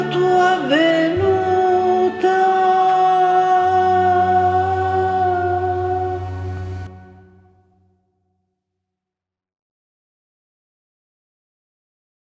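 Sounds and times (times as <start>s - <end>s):
sopranos and tenors singing: 0.0s - 7.3s.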